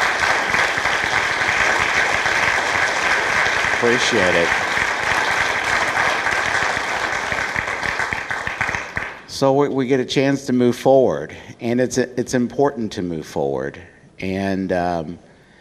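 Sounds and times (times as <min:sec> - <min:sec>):
crowd applauding: 0:00.0 - 0:09.3
speech: 0:03.8 - 0:04.7, 0:09.4 - 0:15.3.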